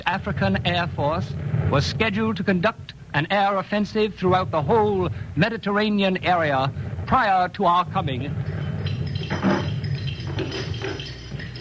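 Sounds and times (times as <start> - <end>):
low rumble: 0.0 - 11.5
speech: 0.1 - 8.5
ship's anchor chain running down: 8.4 - 11.5.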